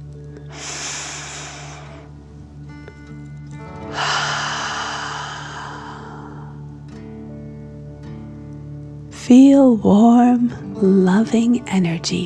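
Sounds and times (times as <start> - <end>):
soft sustained music tones: 0.0 - 12.2
deep breathing in a relaxing children's story: 0.3 - 2.3, 3.8 - 7.2
speech: 9.3 - 12.2.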